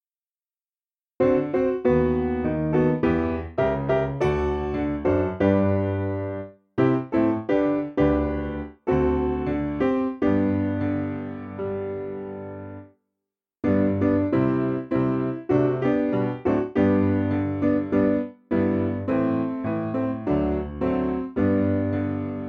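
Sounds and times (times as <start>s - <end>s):
piano: 1.2s - 13.0s, 13.6s - 22.4s.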